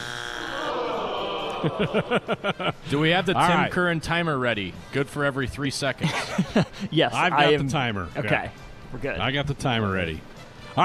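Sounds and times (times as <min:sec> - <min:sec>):
game show wrong-answer buzzer: 0:00.0 - 0:00.7
laughter: 0:00.6 - 0:03.4, 0:06.0 - 0:07.0
speech: 0:01.6 - 0:10.8.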